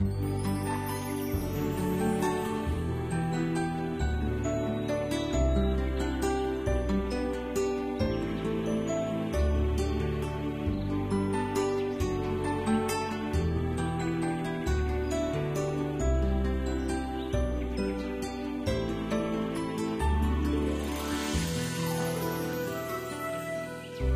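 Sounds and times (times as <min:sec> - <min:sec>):
music score: 0:00.0 - 0:24.1.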